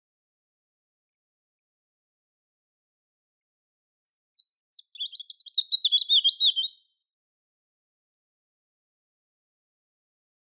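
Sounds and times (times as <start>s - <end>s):
European robin Erithacus rubecula singing: 4.4s - 7.0s.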